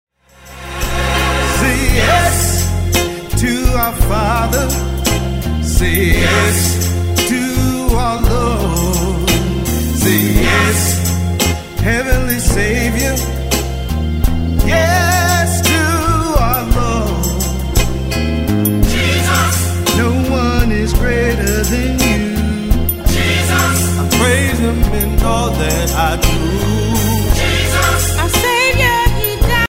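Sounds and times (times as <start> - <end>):
vocals: 0.4 - 13.8, 14.6 - 18.1, 18.8 - 29.6.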